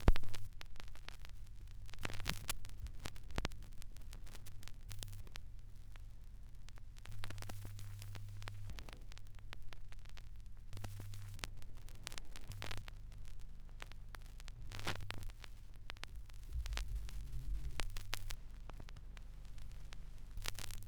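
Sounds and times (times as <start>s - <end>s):
vinyl crackles: 0.0s - 20.8s.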